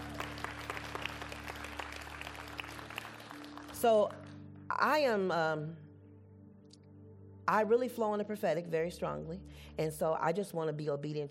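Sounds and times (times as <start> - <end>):
audience clapping: 0.0 - 4.3
speech: 3.8 - 5.8, 7.5 - 11.3.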